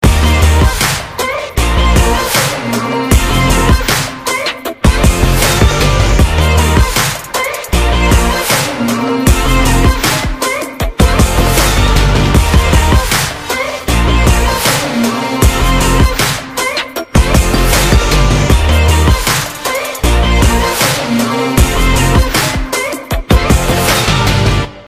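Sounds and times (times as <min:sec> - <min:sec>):
instrumental music: 0:00.0 - 0:24.8.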